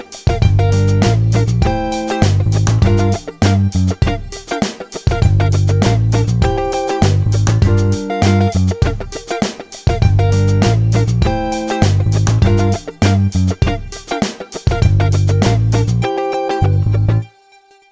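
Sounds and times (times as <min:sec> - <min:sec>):
disco music: 0:00.0 - 0:17.3.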